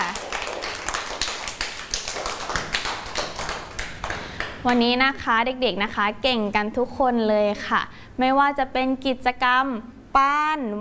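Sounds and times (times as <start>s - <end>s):
children clapping for a classmate: 0.0s - 4.8s
speech: 4.6s - 10.7s.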